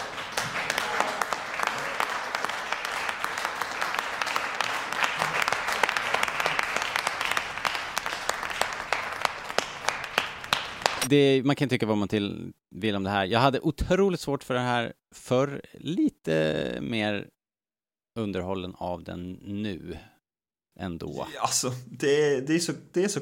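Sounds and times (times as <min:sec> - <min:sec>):
applause sound effect: 0:00.0 - 0:11.1
speech: 0:11.1 - 0:17.4, 0:18.2 - 0:20.1, 0:20.8 - 0:23.2.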